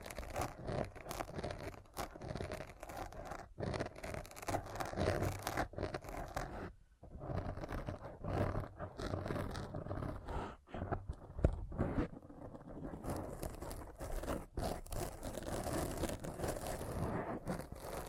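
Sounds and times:
rasping scratching: 0.0 - 18.0.

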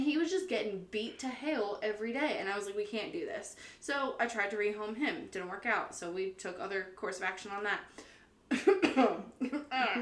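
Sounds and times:
speech: 0.6 - 10.0
person coughing after choking on own spit: 8.5 - 10.0.

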